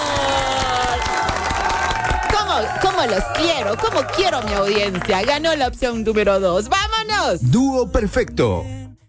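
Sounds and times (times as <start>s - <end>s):
loud dense audience applause mixed with cheering: 0.0s - 5.6s
speech: 2.6s - 8.8s.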